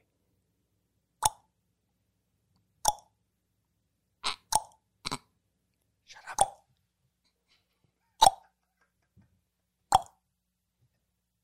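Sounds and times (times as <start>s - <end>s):
mouth tongue clicks imitating a hip-hop click sound: 1.2s - 1.5s, 2.8s - 3.1s, 4.2s - 5.2s, 6.3s - 6.6s.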